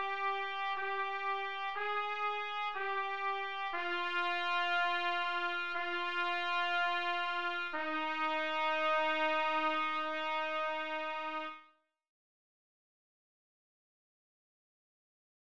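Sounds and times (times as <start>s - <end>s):
trumpet: 0.0s - 11.8s.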